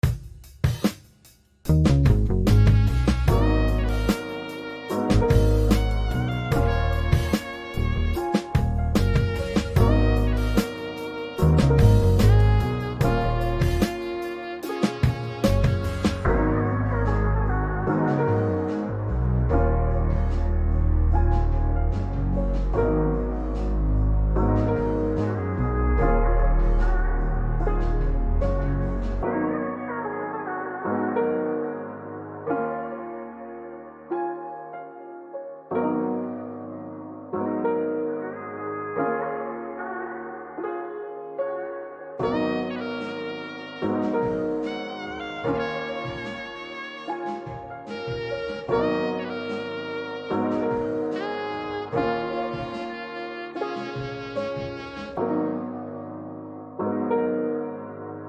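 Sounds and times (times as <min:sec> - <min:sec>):
jazz music: 0:00.0 - 0:58.2.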